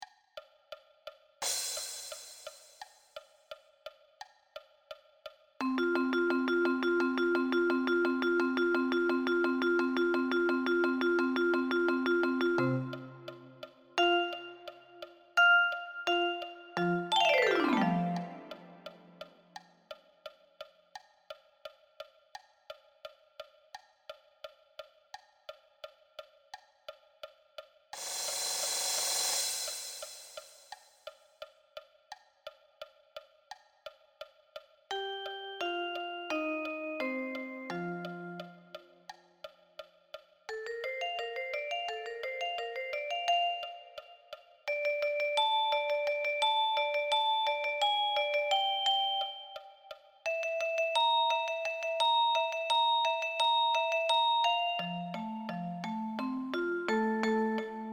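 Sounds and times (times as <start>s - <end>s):
vibraphone: 5.6s - 19.3s, 34.9s - 38.9s, 40.5s - 57.9s.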